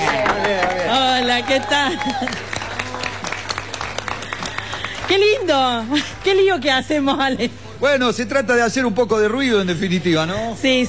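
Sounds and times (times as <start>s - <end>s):
crowd applause: 0.0s - 6.3s
speech: 1.4s - 2.6s, 5.1s - 10.8s.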